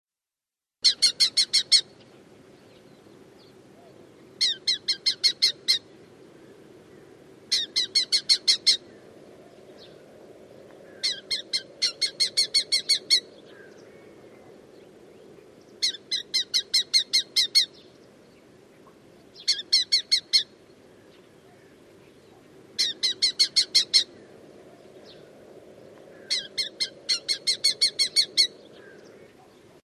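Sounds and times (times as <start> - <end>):
bird calls of fast harsh chattering notes: 0.8 - 2.0, 4.4 - 5.9, 7.5 - 8.9, 10.9 - 13.8, 15.8 - 17.8, 19.4 - 20.5, 22.4 - 24.2, 26.1 - 29.6.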